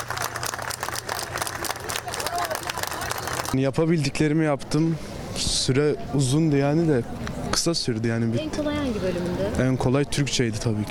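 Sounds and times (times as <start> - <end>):
applause: 0.0 - 3.6
speech: 3.5 - 10.9.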